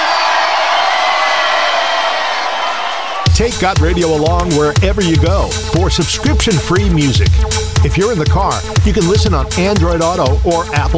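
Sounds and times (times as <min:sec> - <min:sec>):
crowd cheering and whooping: 0:00.0 - 0:03.3
speech: 0:03.4 - 0:10.9.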